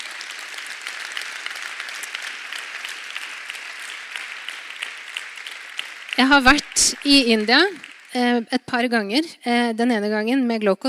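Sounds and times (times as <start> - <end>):
audience applause: 0.0 - 8.4
speech: 6.2 - 10.8.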